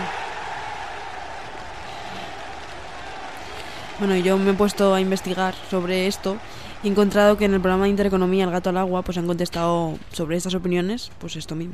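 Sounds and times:
applause: 0.0 - 8.5
speech: 4.0 - 11.7.

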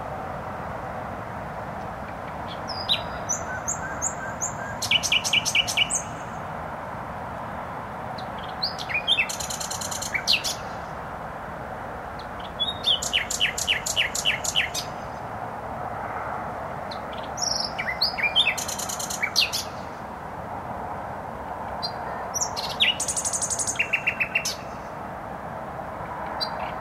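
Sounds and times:
traffic rumble: 0.0 - 26.7
nightingale song: 1.8 - 6.6, 8.1 - 11.1, 12.1 - 15.3, 16.8 - 20.1, 21.5 - 25.0, 26.0 - 26.7.

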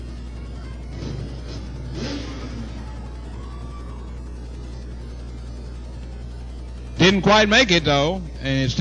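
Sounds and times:
racing car engines in an evening heat race: 0.0 - 8.7
speech: 7.0 - 8.7.

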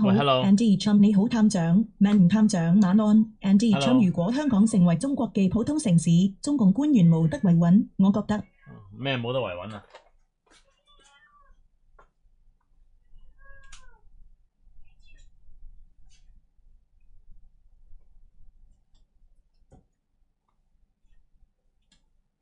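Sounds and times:
speech: 0.0 - 10.0
cat meowing: 10.8 - 11.6, 13.2 - 14.1, 14.9 - 15.3.

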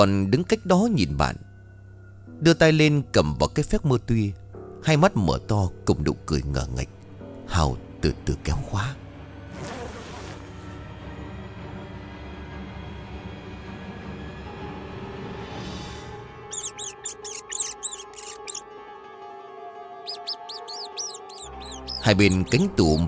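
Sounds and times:
speech: 0.0 - 1.5, 2.4 - 9.0, 22.1 - 23.0
rats scurrying inside a wardrobe: 16.5 - 18.6, 20.1 - 23.0.

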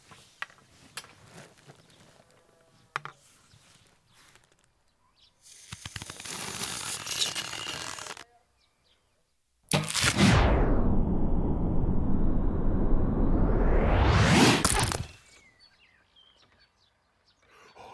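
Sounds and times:
arrow splitting another arrow with a sharp crack: 9.7 - 12.1, 13.5 - 15.2
arrow shot whooshing during an archery contest: 9.7 - 15.2.

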